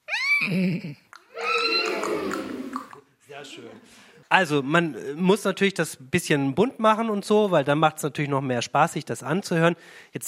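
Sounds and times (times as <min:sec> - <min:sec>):
person imitating horse neighing: 0:00.0 - 0:03.0
speech: 0:00.4 - 0:01.0, 0:03.4 - 0:10.2.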